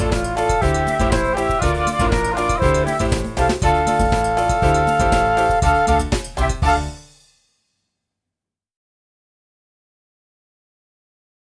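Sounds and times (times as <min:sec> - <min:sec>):
flute: 0:00.0 - 0:07.0.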